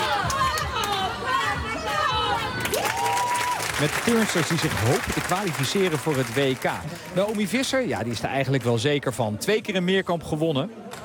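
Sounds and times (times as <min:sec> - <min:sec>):
large crowd roaring and cheering at a gymnastics competition in the Topsportcentrum in Rotterdam: 0:00.0 - 0:07.6
speech: 0:03.8 - 0:11.0.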